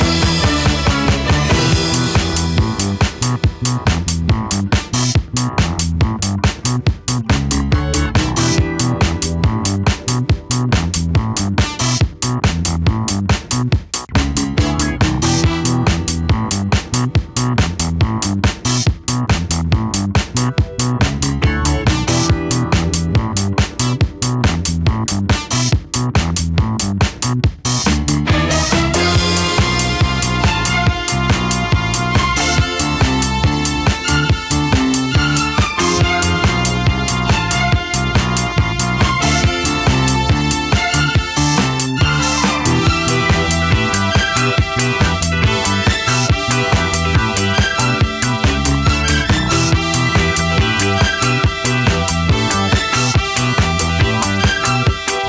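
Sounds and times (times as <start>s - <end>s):
disco music: 0.0s - 55.2s.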